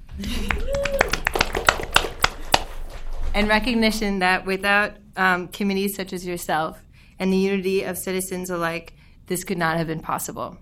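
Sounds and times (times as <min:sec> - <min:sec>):
scattered hand claps: 0:00.4 - 0:02.7
speech: 0:03.4 - 0:10.6.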